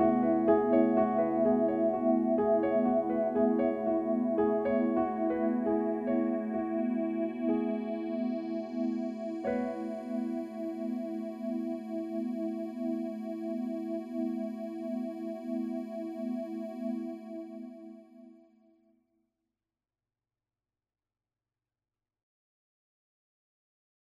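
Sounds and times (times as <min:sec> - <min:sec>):
piano: 0:00.0 - 0:18.2
synthesizer: 0:00.0 - 0:18.6.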